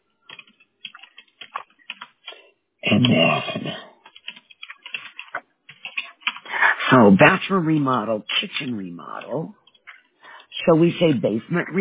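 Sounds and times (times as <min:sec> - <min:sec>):
computer keyboard typing as keywords are entered: 0:00.2 - 0:06.5, 0:09.2 - 0:10.3
speech: 0:02.9 - 0:03.8, 0:06.9 - 0:09.6, 0:10.6 - 0:11.7.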